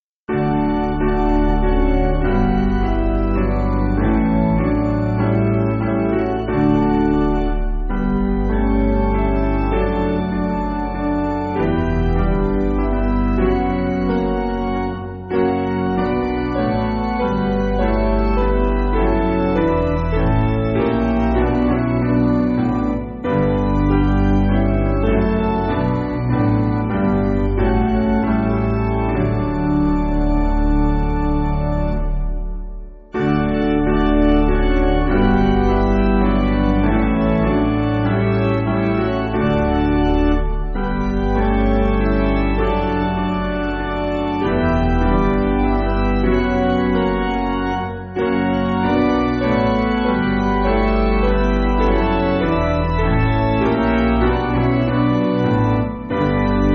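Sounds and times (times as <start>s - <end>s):
worship piano music: 0.0s - 56.7s.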